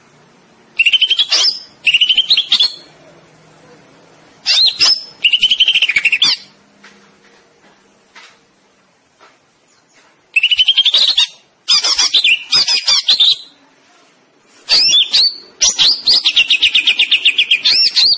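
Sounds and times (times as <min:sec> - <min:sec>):
greater green leafbird song with trills and whistles: 0:00.8 - 0:02.9, 0:04.4 - 0:06.6, 0:09.7 - 0:13.5, 0:14.7 - 0:18.1.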